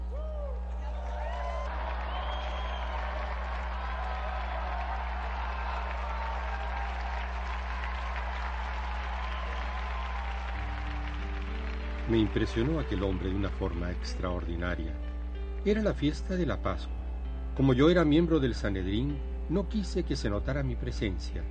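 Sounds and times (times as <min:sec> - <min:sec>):
audience applause: 0:00.2 - 0:14.1
speech: 0:12.1 - 0:17.0, 0:17.6 - 0:21.4.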